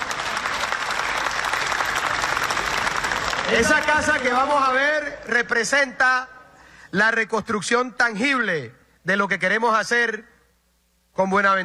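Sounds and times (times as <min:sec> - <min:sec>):
audience applause: 0:00.0 - 0:04.5
speech: 0:03.5 - 0:10.3, 0:11.2 - 0:11.6.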